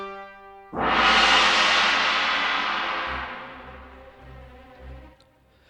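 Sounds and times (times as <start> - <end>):
gong crash opening an orchestral requiem: 0.7 - 4.5.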